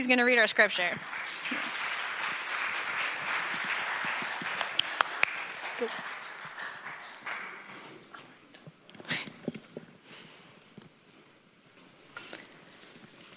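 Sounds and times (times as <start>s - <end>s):
speech: 0.0s - 1.6s, 5.8s - 6.1s
crowd applauding: 0.7s - 8.2s.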